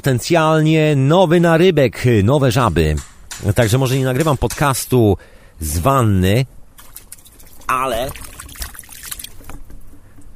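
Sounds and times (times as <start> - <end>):
speech: 0.0 - 6.6, 7.7 - 8.3
water trickling at a garden pond: 6.8 - 10.3.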